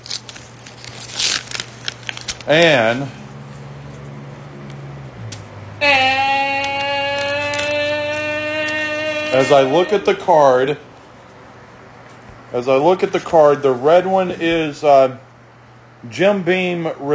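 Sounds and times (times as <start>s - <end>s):
paper envelope being torn open: 0.0s - 2.7s
speech: 2.4s - 3.2s, 9.4s - 10.9s, 12.5s - 15.3s, 16.0s - 17.1s
long sustained tone: 5.8s - 10.8s
voiced sounds: 5.8s - 10.9s.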